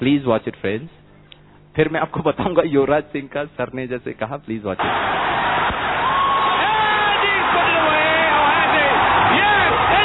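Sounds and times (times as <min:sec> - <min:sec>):
speech: 0:00.0 - 0:01.0, 0:01.8 - 0:06.0
audience clapping: 0:04.8 - 0:10.0
crowd whooping and cheering: 0:04.8 - 0:10.0.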